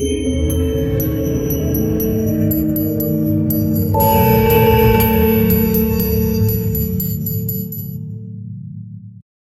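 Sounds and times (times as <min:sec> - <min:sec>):
slow bell tolling: 0:00.0 - 0:08.0.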